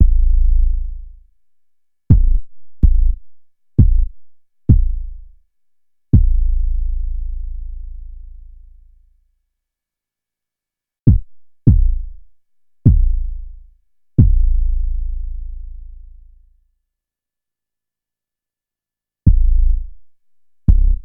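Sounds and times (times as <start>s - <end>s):
kick drum: 0.0s - 0.4s, 2.1s - 5.4s, 6.1s - 6.6s, 11.1s - 13.5s, 14.2s - 14.6s, 19.3s - 20.1s, 20.7s - 21.0s.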